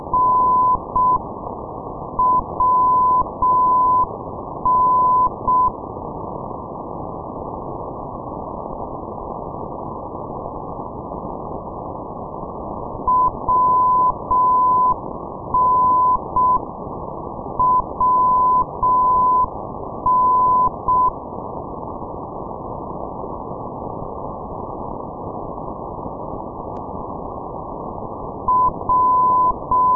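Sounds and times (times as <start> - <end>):
non-directional radio beacon signal: 0.0 - 1.2, 2.2 - 5.8, 13.1 - 16.6, 17.6 - 21.2, 28.5 - 29.9.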